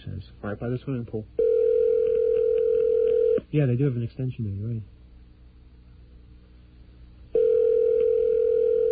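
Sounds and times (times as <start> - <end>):
speech: 0.2 - 1.5, 3.5 - 4.9
telephone ringing tone on the line: 1.4 - 3.4, 7.3 - 8.8.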